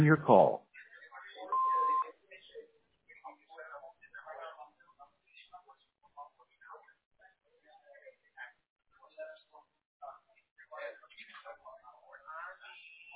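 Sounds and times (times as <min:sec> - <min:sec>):
person talking: 0:00.0 - 0:00.6
answering machine beep: 0:01.5 - 0:02.0.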